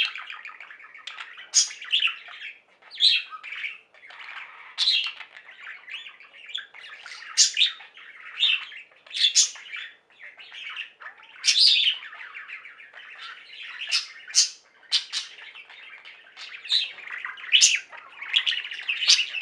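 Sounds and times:
budgerigar chatter: 0.0s - 19.3s.

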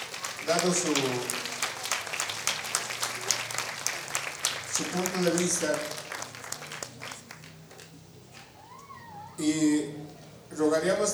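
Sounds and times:
audience applause at a community anniversary gathering in Cherán: 0.0s - 8.6s
speech: 0.4s - 1.5s, 4.8s - 6.0s, 9.4s - 11.1s.

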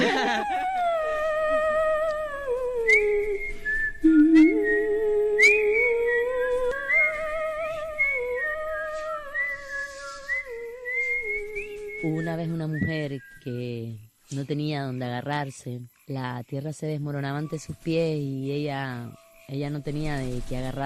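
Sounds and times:
laughter: 0.0s - 1.0s
woman whistling a melody: 0.5s - 13.4s
speech: 14.3s - 20.8s.

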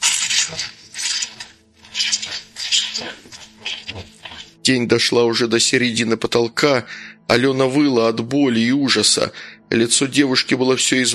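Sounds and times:
saw cutting into skull bone above the temple: 0.0s - 4.6s
speech: 0.5s - 0.8s, 4.7s - 11.1s.

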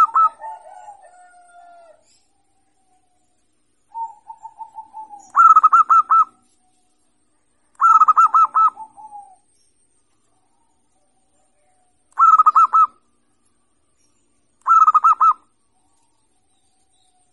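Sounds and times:
zebra dove cooing: 0.0s - 2.2s, 3.9s - 6.5s, 7.8s - 9.5s, 11.5s - 13.1s, 14.6s - 15.5s.

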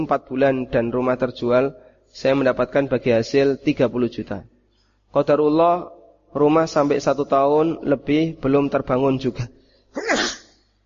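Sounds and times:
speech: 0.0s - 4.5s, 5.1s - 10.2s
sneeze: 9.9s - 10.7s.

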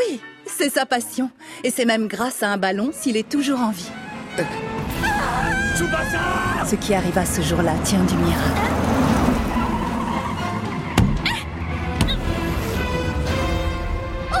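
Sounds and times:
speech: 0.2s - 9.0s
truck engine rumbling: 3.3s - 14.3s
truck tires screeching in a long high skid: 3.4s - 13.6s.

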